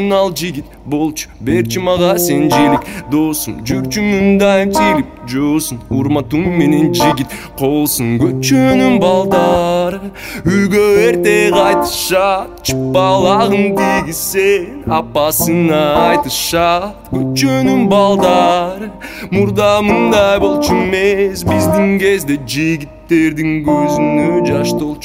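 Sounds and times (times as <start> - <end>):
guitar: 0.0 - 25.0.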